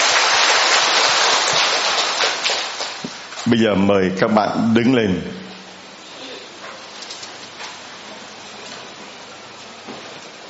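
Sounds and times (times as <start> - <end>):
crowd applause: 0.0 - 3.2
speech: 3.4 - 5.4.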